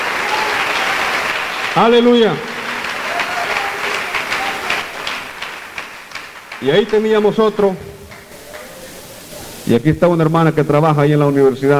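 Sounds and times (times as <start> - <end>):
audience applause: 0.0 - 9.3
speech: 1.8 - 2.5, 6.6 - 8.0, 9.7 - 11.7.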